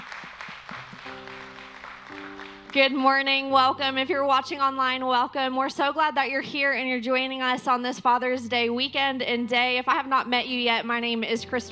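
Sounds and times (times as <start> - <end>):
audience clapping for dads at a Father's Day gathering: 0.0 - 3.2
speech: 2.1 - 11.7.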